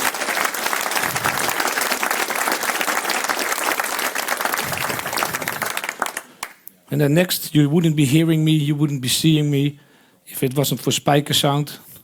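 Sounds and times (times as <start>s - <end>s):
loud audience applause: 0.0s - 6.6s
speech: 6.9s - 11.9s.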